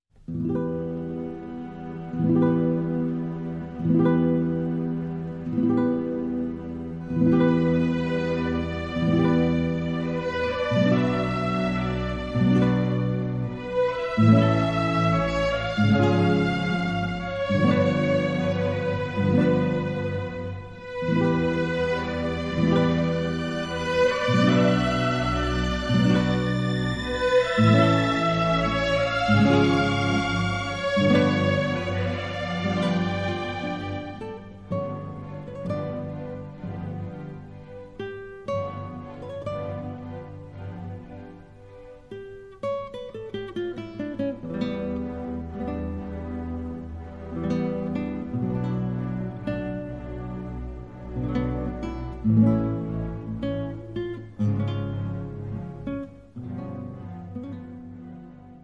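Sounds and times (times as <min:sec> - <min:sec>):
romance for guitar and orchestra: 0:00.1 - 0:58.6.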